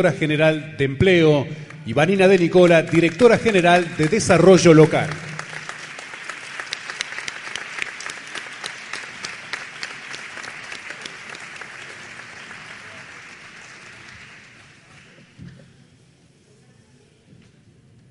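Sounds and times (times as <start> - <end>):
speech: 0.0 - 5.2
audience applause: 2.2 - 15.5.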